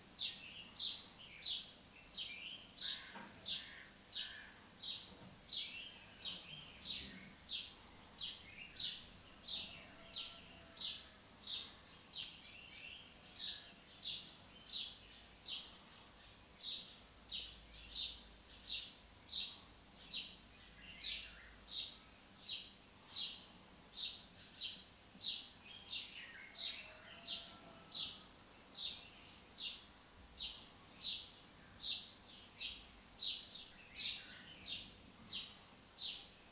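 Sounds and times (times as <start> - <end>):
dawn garden ambience in Anamur: 0.0 - 36.5.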